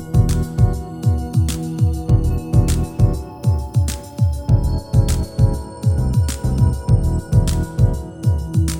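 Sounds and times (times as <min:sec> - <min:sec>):
432 Hz chillout music: 0:00.0 - 0:08.7.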